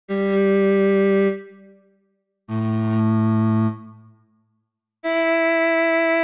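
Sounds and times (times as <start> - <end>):
violin notes G4 A3 E5: 0.1 - 1.8, 2.5 - 4.2, 5.0 - 6.2.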